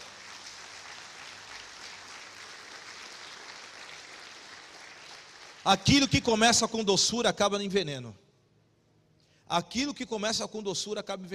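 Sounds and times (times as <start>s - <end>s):
audience applause: 0.0s - 5.8s
speech: 5.6s - 8.2s, 9.5s - 11.3s.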